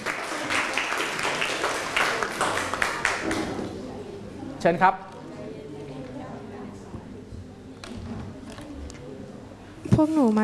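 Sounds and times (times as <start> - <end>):
crowd applause: 0.0 - 3.8
speech: 4.6 - 5.1, 10.0 - 10.4.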